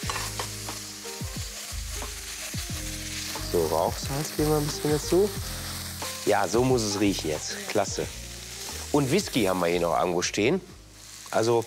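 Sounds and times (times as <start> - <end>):
spoon scraping and stirring a thick mixture in a pan: 0.0 - 0.8
tomato paste frying hiss in a sizzling pan: 0.0 - 11.6
speech: 3.5 - 5.6, 6.3 - 8.2, 8.9 - 10.7, 11.3 - 11.6.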